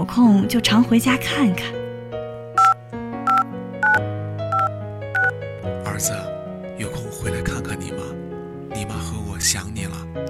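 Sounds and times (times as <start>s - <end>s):
soft music: 0.0s - 10.2s
speech: 0.1s - 1.8s, 6.0s - 6.3s
telephone keypad beeps: 2.6s - 5.4s.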